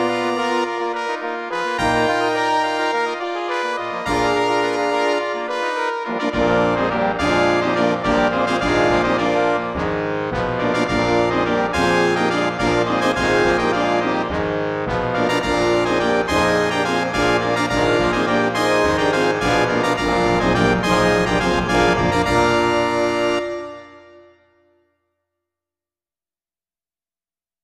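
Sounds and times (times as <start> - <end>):
large brass ensemble fanfare: 0.0 - 24.4.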